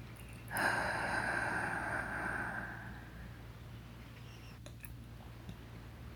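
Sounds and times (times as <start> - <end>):
low hum: 0.0 - 6.1
slow deep breath through the mouth: 0.5 - 3.1.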